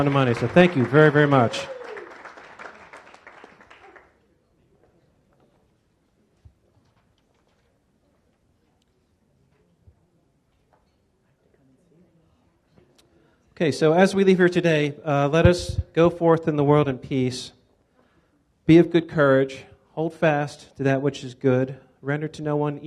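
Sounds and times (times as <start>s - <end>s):
speech: 0.0s - 1.8s, 13.6s - 17.6s, 18.7s - 22.8s
audience applause: 0.0s - 4.2s.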